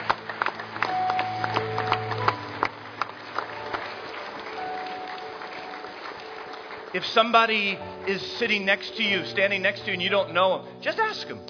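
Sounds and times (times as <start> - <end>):
audience hand clapping: 0.0 - 9.2
speech: 7.0 - 11.4.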